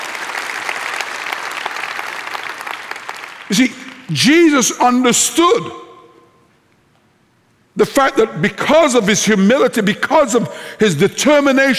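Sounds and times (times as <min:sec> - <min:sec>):
audience clapping: 0:00.0 - 0:04.2
speech: 0:03.5 - 0:05.8, 0:07.8 - 0:11.7.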